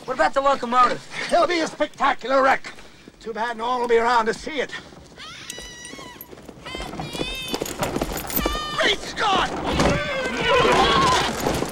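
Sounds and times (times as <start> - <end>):
speech: 0.1 - 4.9, 8.9 - 11.0
two horses pulling a buckboard whinnying: 5.1 - 11.6.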